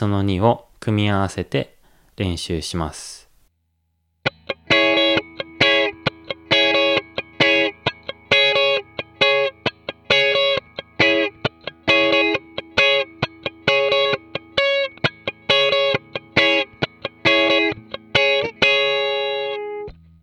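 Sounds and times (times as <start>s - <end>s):
speech: 0.0s - 3.2s
electric guitar cutting strum through distortion and chorus effects: 4.2s - 20.0s.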